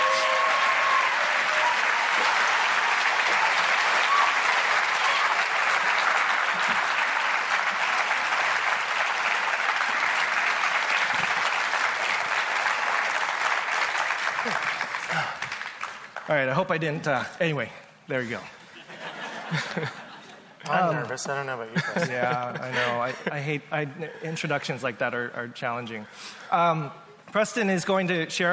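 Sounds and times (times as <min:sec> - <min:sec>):
audience applause welcoming two speakers: 0:00.0 - 0:16.6
laughter: 0:05.8 - 0:07.8, 0:18.4 - 0:24.4
speech: 0:16.4 - 0:18.6, 0:19.5 - 0:20.0, 0:20.6 - 0:28.5.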